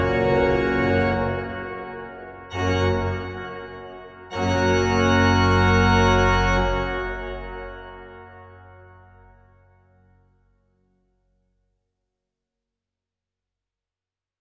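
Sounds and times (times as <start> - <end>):
grand choeur organ piece: 0.0 - 9.5.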